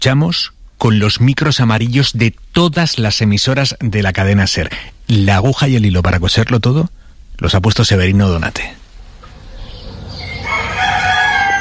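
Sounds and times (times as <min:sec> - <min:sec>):
speech: 0:00.0 - 0:08.8
low farmyard rumble: 0:09.0 - 0:11.5
roosters crowing: 0:09.2 - 0:11.5.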